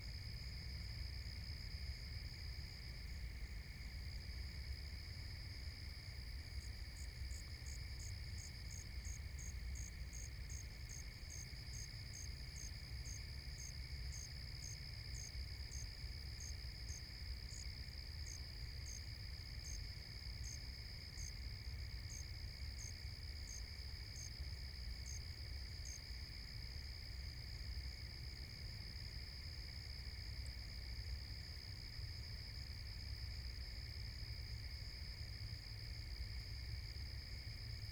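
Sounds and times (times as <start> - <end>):
forest at night: 0.0 - 37.9.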